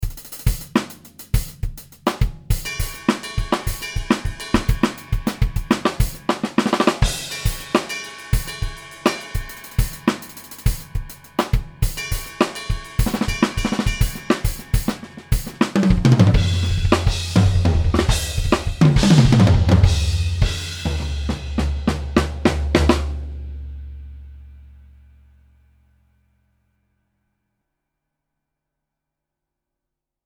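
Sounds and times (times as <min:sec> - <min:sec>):
fusion music: 0:00.0 - 0:23.4.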